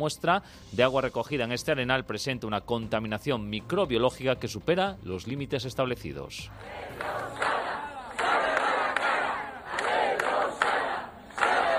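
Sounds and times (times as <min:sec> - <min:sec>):
speech: 0:00.0 - 0:07.5
protest crowd chanting: 0:06.5 - 0:11.7.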